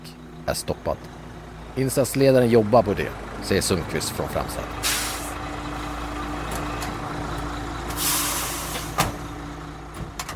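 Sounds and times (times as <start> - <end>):
heavy fire engine idling: 0.0 - 10.3
speech: 0.5 - 1.2, 1.8 - 4.9
fire engine air brakes hissing: 4.8 - 5.4, 7.9 - 9.2.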